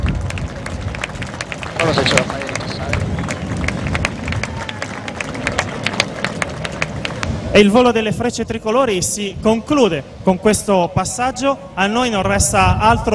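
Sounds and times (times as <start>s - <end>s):
crowd applauding outdoors: 0.0s - 7.9s
low murmur of noise: 0.0s - 11.8s
speech: 1.8s - 2.4s, 7.6s - 13.1s.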